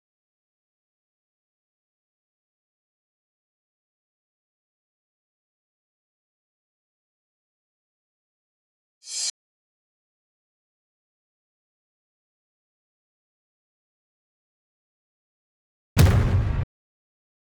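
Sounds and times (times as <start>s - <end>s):
booms at 120 bpm: 16.0s - 16.7s.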